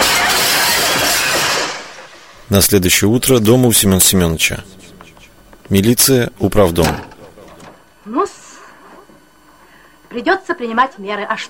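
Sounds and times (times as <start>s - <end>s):
window smashed with a chair: 0.0s - 2.0s
speech: 2.5s - 4.8s, 5.7s - 7.1s, 8.0s - 8.4s, 10.1s - 11.4s.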